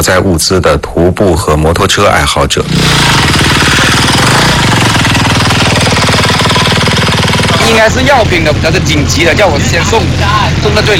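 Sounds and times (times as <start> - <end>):
speech: 0.0 - 4.6, 7.7 - 10.9
excavators working on a road: 2.6 - 10.9.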